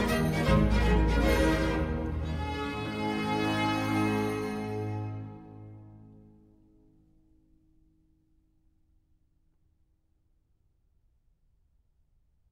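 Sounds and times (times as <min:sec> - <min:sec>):
gavotte: 0:00.0 - 0:06.4.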